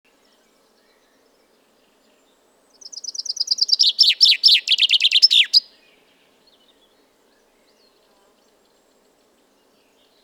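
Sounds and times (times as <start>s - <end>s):
common chaffinch Fringilla coelebs song: 2.8s - 5.8s.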